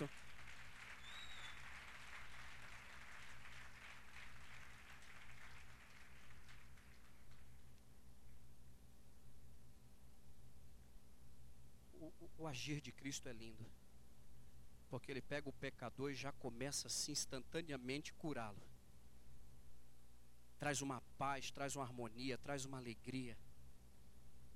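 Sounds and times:
audience applause: 0:00.0 - 0:07.5
low steady hum: 0:00.0 - 0:24.5
speech: 0:12.4 - 0:13.8, 0:14.9 - 0:18.7, 0:20.6 - 0:23.4.

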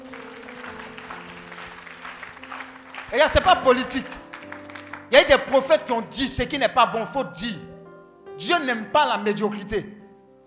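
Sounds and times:
church congregation applauding: 0:00.0 - 0:06.4
speech: 0:03.1 - 0:04.2, 0:05.1 - 0:07.7, 0:08.4 - 0:10.0.

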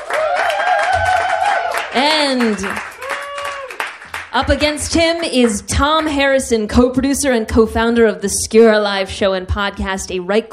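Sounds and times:
sustained high cheer or whistle: 0:00.0 - 0:02.0, 0:02.8 - 0:03.9
audience clapping: 0:00.0 - 0:06.4
speech: 0:02.0 - 0:02.9, 0:04.4 - 0:10.5.

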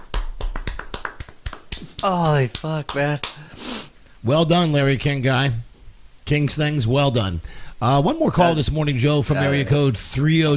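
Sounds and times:
polite golf clap: 0:00.0 - 0:03.5
speech: 0:02.0 - 0:03.6, 0:04.2 - 0:05.7, 0:06.3 - 0:10.5.

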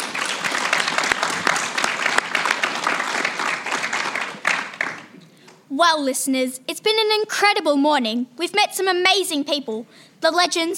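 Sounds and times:
studio audience applause: 0:00.0 - 0:05.2
speech: 0:05.8 - 0:10.7.

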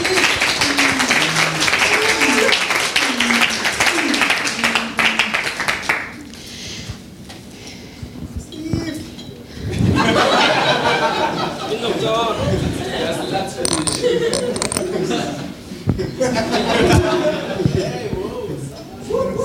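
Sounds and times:
laughter: 0:00.0 - 0:05.4, 0:09.7 - 0:18.5
audience applause: 0:00.0 - 0:06.2.

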